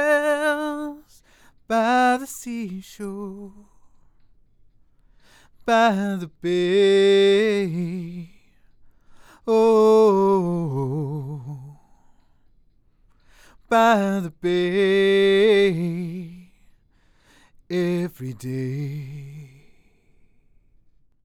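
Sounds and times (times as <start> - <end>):
a cappella singing: 0.0 - 4.1, 5.5 - 8.6, 9.4 - 12.2, 13.5 - 16.6, 17.6 - 20.0.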